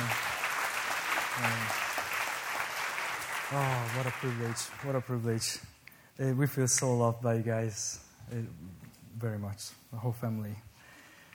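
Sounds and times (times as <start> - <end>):
audience applause welcoming a guest speaker: 0.0 - 5.2
speech: 3.5 - 10.7.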